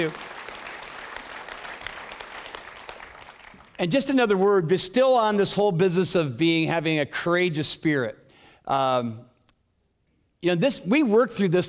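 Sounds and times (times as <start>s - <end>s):
speech: 0.0s - 0.3s, 3.8s - 9.3s, 10.4s - 11.6s
audience applause: 0.0s - 3.8s.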